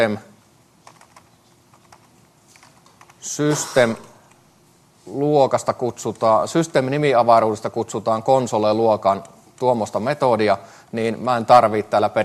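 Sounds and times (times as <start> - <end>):
speech: 0.0 - 0.3, 3.2 - 4.1, 5.0 - 12.2
typing on a computer keyboard: 0.8 - 4.4.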